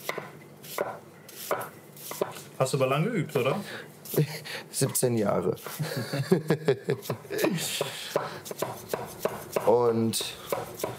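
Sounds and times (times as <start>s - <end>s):
knife dicing food into small cubes: 0.0s - 2.4s, 7.1s - 10.9s
speech: 2.6s - 10.9s
laughter: 5.7s - 7.6s.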